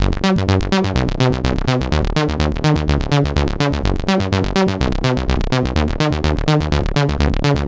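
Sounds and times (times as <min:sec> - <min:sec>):
synth loop in C minor at 125: 0:00.0 - 0:07.6.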